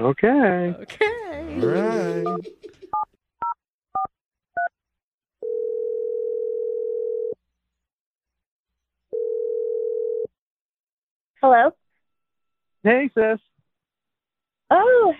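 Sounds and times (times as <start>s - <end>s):
speech: 0.0s - 2.6s, 11.4s - 11.8s, 12.8s - 13.5s
laughter: 0.9s - 2.9s
phone ringing tone: 5.4s - 7.4s, 9.1s - 10.3s.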